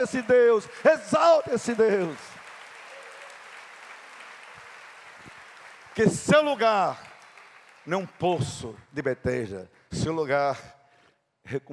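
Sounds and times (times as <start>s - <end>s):
speech: 0.0s - 2.3s, 6.0s - 7.1s, 7.9s - 10.8s, 11.4s - 11.7s
audience applause: 0.0s - 8.8s.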